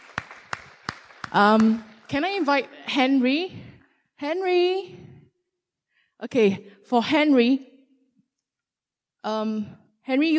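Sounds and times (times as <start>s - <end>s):
sparse hand claps: 0.0s - 2.4s
speech: 1.3s - 3.6s, 4.2s - 5.0s, 6.2s - 7.7s, 9.2s - 10.3s.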